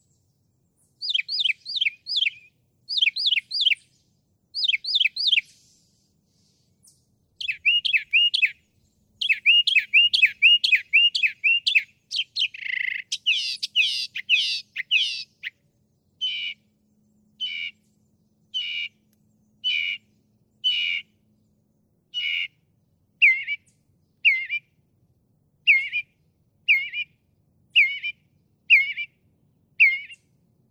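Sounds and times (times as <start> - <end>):
northern mockingbird singing: 0.8 - 4.0, 4.6 - 5.7, 6.8 - 21.1, 22.1 - 22.5, 23.2 - 24.6, 25.6 - 26.1, 26.7 - 27.1, 27.7 - 29.1, 29.8 - 30.3.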